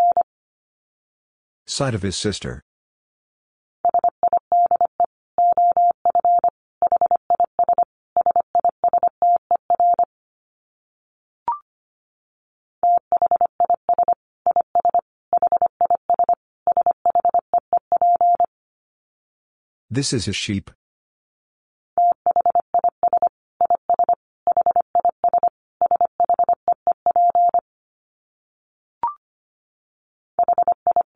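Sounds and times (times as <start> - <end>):
fast Morse code beeps at 25 wpm: 0.0 - 0.2, 3.9 - 9.1, 12.9 - 18.5, 22.0 - 27.6, 30.4 - 31.1
speech: 1.7 - 2.7, 19.9 - 20.8.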